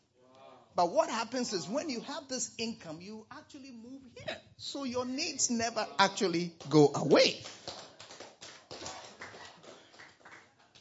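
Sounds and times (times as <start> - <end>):
speech: 0.8 - 7.8
hand claps: 6.6 - 10.7.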